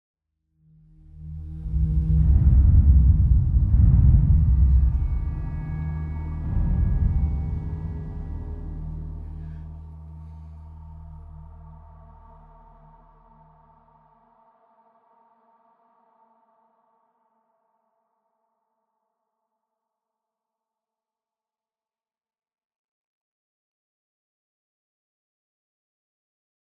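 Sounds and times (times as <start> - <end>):
dark scary exploration mood music: 0.7 - 16.5.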